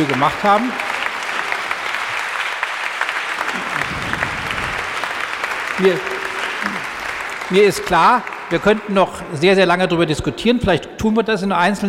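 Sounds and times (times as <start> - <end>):
speech: 0.0 - 0.9, 5.8 - 6.9, 7.5 - 11.8
audience applause: 0.0 - 9.4.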